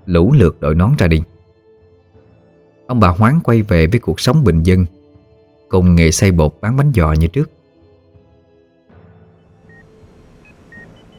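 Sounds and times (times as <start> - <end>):
speech: 0.1 - 1.4, 2.9 - 5.0, 5.7 - 7.6
hospital machine beeping: 9.6 - 11.1.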